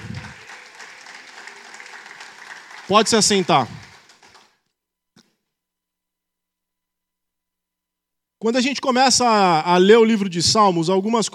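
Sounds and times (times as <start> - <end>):
audience applauding: 0.0 - 4.6
speech: 2.9 - 3.8, 8.4 - 11.3.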